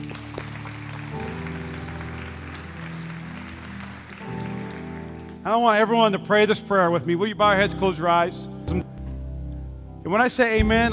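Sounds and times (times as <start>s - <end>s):
audience clapping: 0.0s - 5.9s
speech: 5.4s - 8.8s, 10.0s - 10.9s.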